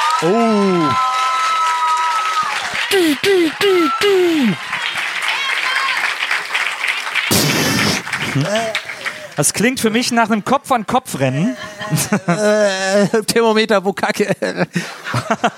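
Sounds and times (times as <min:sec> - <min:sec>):
audience applause: 0:00.0 - 0:10.1
speech: 0:00.2 - 0:01.1, 0:09.4 - 0:15.5
laughter: 0:02.9 - 0:04.6, 0:07.3 - 0:09.4, 0:11.3 - 0:13.4, 0:14.2 - 0:15.5.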